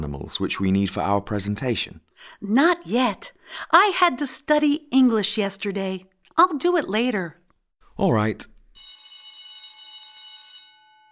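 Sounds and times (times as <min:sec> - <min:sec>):
speech: 0:00.0 - 0:07.4, 0:08.0 - 0:08.5
electric school bell ringing to end the morning break: 0:08.8 - 0:11.1.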